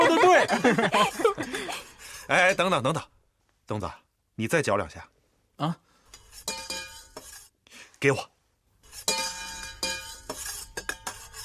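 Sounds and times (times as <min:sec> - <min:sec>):
laughter: 0:00.0 - 0:01.9
speech: 0:00.6 - 0:01.4, 0:02.3 - 0:05.8, 0:08.0 - 0:08.3
iron spoon clinking enamel mug: 0:06.4 - 0:07.2, 0:09.0 - 0:11.4.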